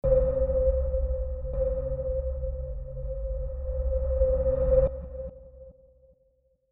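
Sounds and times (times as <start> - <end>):
sonar ping: 0.0 - 5.4.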